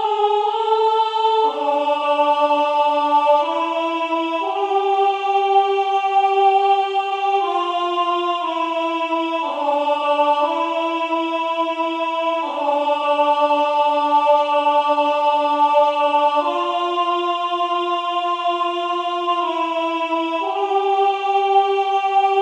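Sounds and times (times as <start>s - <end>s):
soprano singing verse: 0.0s - 22.4s.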